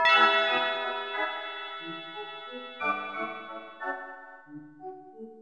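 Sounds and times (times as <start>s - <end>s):
secret unlocked jingle: 0.0s - 3.9s.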